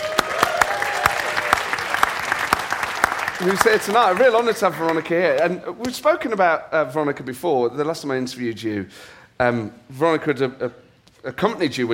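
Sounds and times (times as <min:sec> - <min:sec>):
audience round of applause: 0:00.0 - 0:05.2
speech: 0:03.4 - 0:11.9.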